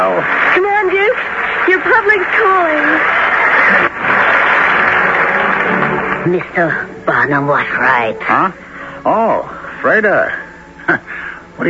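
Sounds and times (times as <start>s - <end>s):
speech: 0.0s - 0.4s, 6.3s - 11.6s
audience applause: 0.0s - 7.0s.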